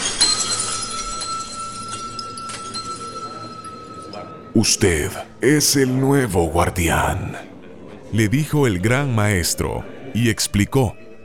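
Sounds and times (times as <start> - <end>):
glass thrown to the floor and breaking: 0.0 - 3.3
speech: 4.5 - 7.5, 8.1 - 11.0.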